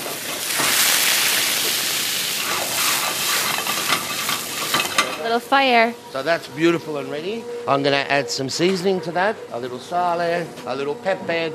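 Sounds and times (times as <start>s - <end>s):
pasta water sizzling in a hot pan: 0.0s - 5.6s
speech: 5.3s - 11.5s.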